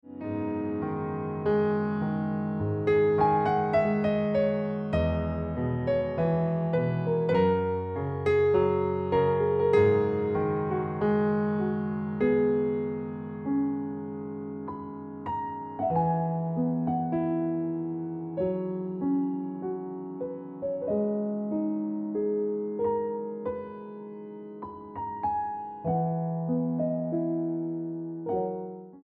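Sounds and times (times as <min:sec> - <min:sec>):
piano ringtone music: 0:00.0 - 0:29.0.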